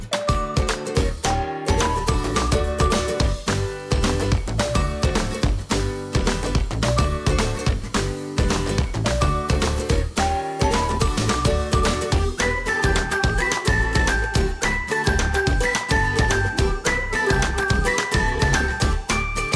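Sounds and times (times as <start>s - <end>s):
music loop: 0.1s - 19.5s.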